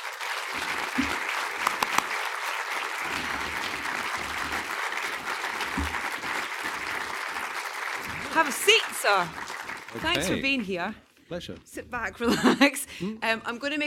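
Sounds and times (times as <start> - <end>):
audience applause at a live event at the BFI: 0.0 - 10.7
speech: 8.4 - 13.8.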